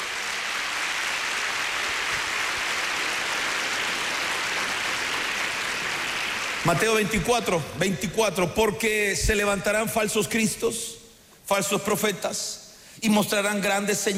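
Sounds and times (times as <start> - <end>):
audience clapping: 0.0 - 7.5
speech: 6.7 - 14.1.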